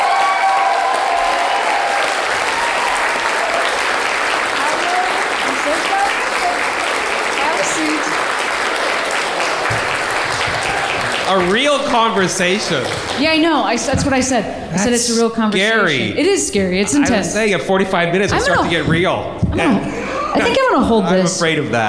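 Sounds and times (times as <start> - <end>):
audience applause: 0.0 - 13.8
speech: 11.3 - 21.8
laughter: 18.3 - 20.8.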